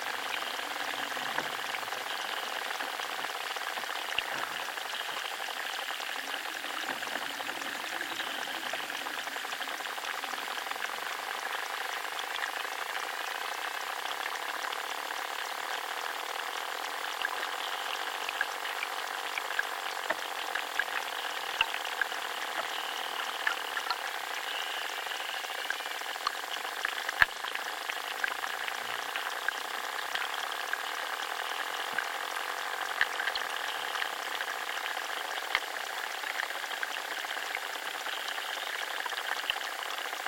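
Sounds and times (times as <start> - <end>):
underwater life crackle and fizz in a chalk river: 0.0 - 40.2.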